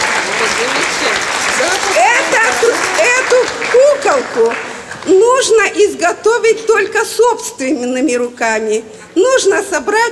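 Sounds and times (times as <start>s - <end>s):
audience applause: 0.0s - 5.1s
speech: 0.6s - 10.0s.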